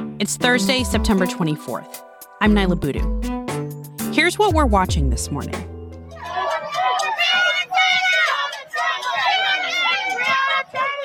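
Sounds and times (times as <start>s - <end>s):
speech: 0.2s - 3.4s, 4.2s - 5.7s
protesters chanting at night in New York, Chicago, D.C. and Louisville: 6.1s - 11.0s.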